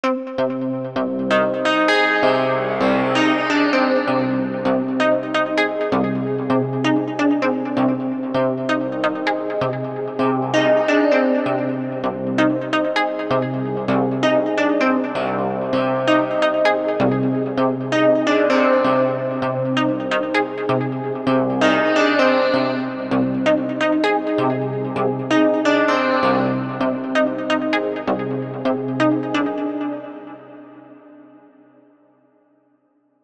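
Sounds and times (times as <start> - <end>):
silver polyphonic synth: 0.1 - 31.8.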